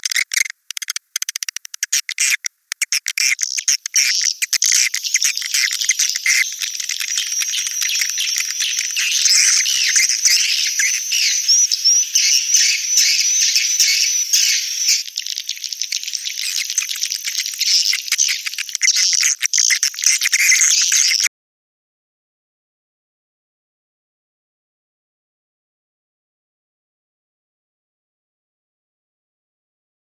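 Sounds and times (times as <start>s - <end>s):
swiftlet twittering: 0.0s - 21.3s.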